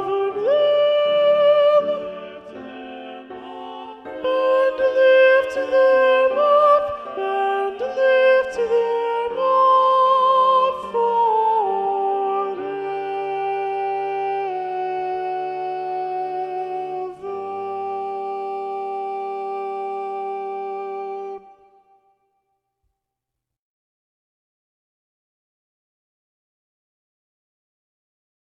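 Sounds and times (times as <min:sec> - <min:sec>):
soprano voice singing: 0:00.0 - 0:22.0.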